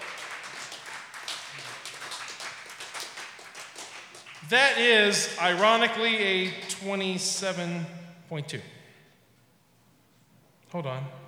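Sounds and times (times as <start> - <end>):
audience applauding a poet: 0.0 - 5.2
speech: 4.5 - 8.8, 10.7 - 11.2.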